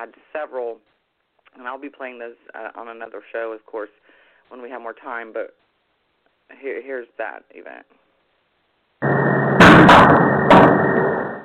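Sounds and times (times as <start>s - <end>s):
speech: 0.0s - 5.6s, 6.5s - 8.0s
loud banging on an outbuilding roof: 9.6s - 11.0s.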